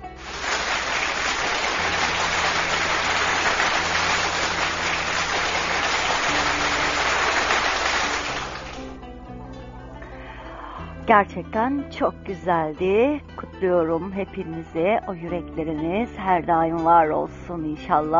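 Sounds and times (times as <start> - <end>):
crowd applause: 0.0 - 9.0
speech: 11.1 - 18.1.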